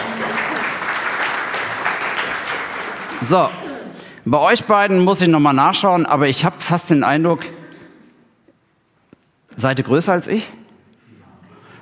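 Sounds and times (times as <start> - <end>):
audience applause: 0.0 - 3.7
speech: 3.2 - 3.6, 4.2 - 7.6, 9.6 - 10.6.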